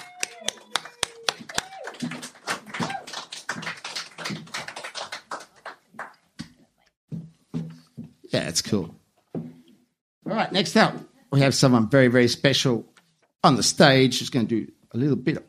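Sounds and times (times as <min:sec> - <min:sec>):
audience applause: 0:00.0 - 0:06.2
speech: 0:08.4 - 0:09.0, 0:10.3 - 0:15.4.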